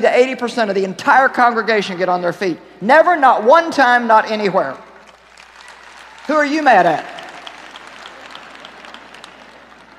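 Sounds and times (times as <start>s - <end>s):
speech: 0.0s - 4.8s, 6.3s - 7.2s
weak applause from an audience: 5.1s - 9.9s.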